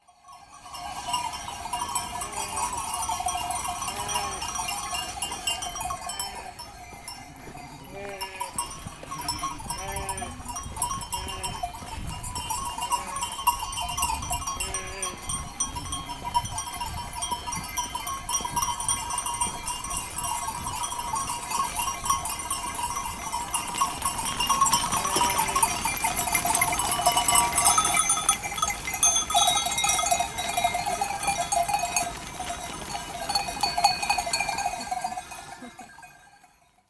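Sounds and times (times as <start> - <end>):
sheep in Crete Greece: 0.4 - 36.4.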